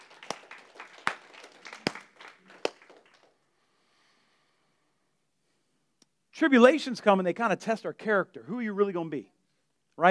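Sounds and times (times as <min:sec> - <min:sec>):
audience clapping: 0:00.0 - 0:03.4
speech: 0:06.4 - 0:09.4.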